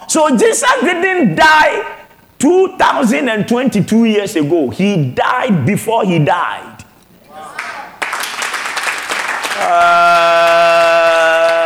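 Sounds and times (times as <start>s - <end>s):
speech: 0.1s - 6.7s, 9.6s - 10.7s
audience clapping: 7.5s - 11.6s.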